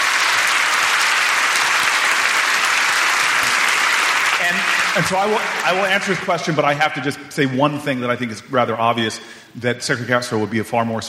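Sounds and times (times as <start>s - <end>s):
audience applause: 0.0s - 6.9s
speech: 5.0s - 11.0s.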